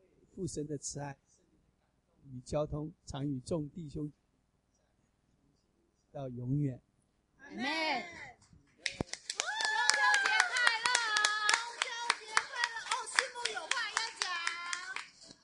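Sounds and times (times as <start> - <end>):
speech: 0.4 - 1.3, 2.3 - 4.2, 6.1 - 8.2
audience clapping hands: 8.8 - 15.4.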